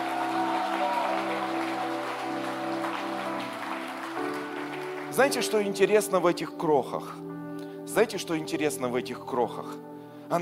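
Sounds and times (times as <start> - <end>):
audience applause: 0.0 - 5.6
speech: 5.2 - 7.3, 7.9 - 10.3.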